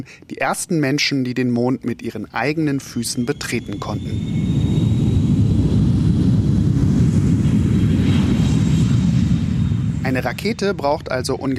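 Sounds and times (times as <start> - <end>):
speech: 0.0 - 4.7, 10.1 - 11.5
passenger airplane flying: 2.7 - 11.5.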